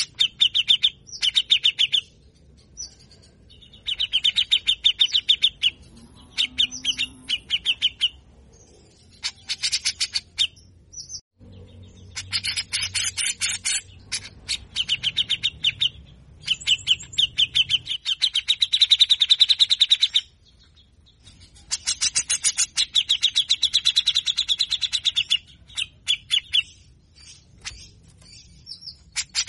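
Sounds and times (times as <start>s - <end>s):
grey-cheeked bulbul chattering song: 0.0s - 29.4s.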